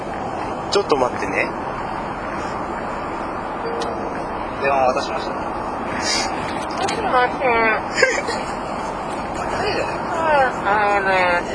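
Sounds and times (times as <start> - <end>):
car interior driving noise: 0.0 - 11.5
speech: 0.7 - 1.8, 4.6 - 8.7, 9.5 - 11.5.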